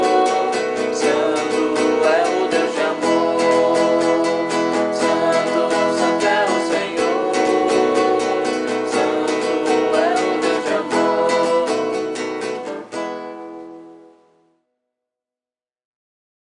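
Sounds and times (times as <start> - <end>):
vocals: 0.0 - 13.1.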